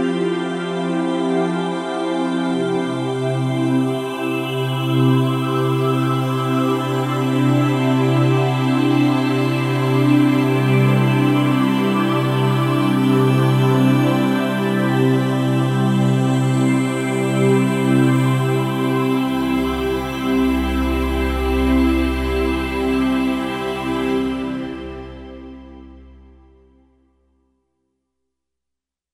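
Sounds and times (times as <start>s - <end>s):
synth pad: 0.2s - 26.7s.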